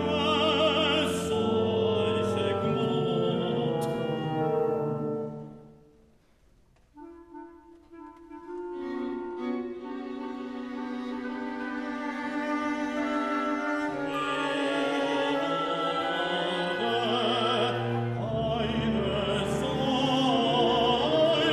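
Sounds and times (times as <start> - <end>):
baritone singing: 0.0 - 5.6, 13.0 - 21.5
large orchestra playing: 0.0 - 6.1, 6.9 - 21.5.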